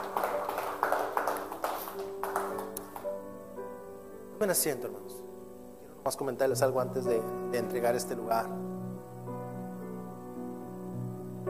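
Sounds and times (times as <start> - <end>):
crowd clapping: 0.0 - 3.2
soft held musical tone: 3.0 - 11.4
speech: 4.4 - 5.2, 6.0 - 8.7.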